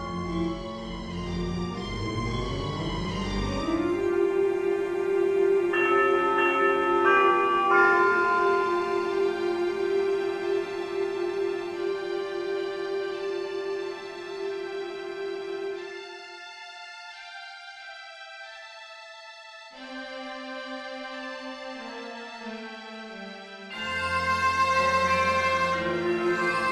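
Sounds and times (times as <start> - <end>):
bells: 0.0 - 15.8, 23.7 - 26.7
cello: 0.0 - 17.4, 19.7 - 26.7
strings: 0.0 - 26.7.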